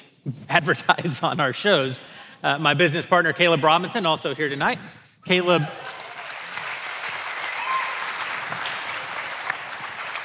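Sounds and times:
speech: 0.2 - 5.9
audience applause: 5.5 - 10.2.

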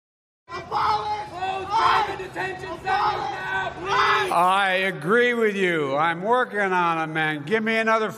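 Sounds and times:
crowd cheering and shouting at a rally: 0.5 - 4.9
speech: 2.2 - 8.1.

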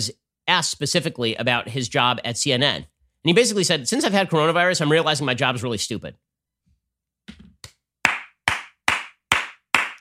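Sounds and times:
speech: 0.0 - 6.3
slow clap: 7.6 - 9.9.

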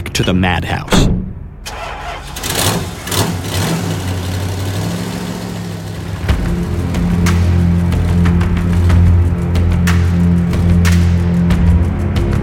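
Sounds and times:
speech: 0.2 - 1.1
truck engine starting and driving off: 1.6 - 12.3.

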